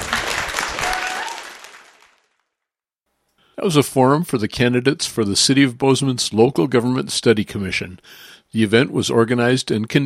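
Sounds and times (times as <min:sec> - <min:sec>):
crowd applause: 0:00.0 - 0:02.4
speech: 0:03.6 - 0:10.0.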